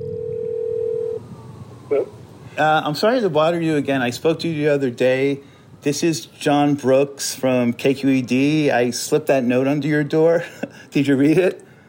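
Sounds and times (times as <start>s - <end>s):
telephone ringing tone on a call: 0.0s - 1.2s
speech: 2.6s - 11.6s
laughter: 10.4s - 10.8s.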